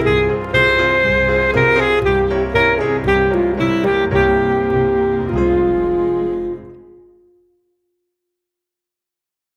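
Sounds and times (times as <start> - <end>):
student saxophone duet: 0.0 - 7.4.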